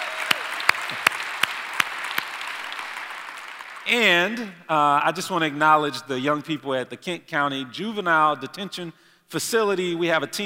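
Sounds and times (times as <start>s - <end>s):
audience applause: 0.0s - 4.3s
sharper louder claps on an even beat: 0.0s - 4.5s
speech: 3.9s - 10.4s.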